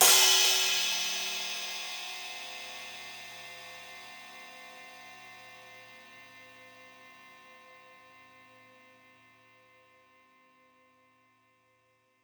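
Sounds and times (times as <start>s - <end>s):
crash: 0.0s - 2.5s.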